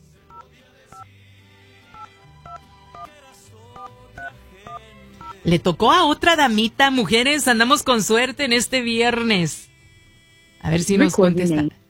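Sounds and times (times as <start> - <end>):
faint music: 0.0 - 11.8
telephone number dialed on a touch-tone keypad: 0.3 - 1.1, 2.0 - 3.1, 3.8 - 5.4
speech: 5.4 - 9.7, 10.6 - 11.8.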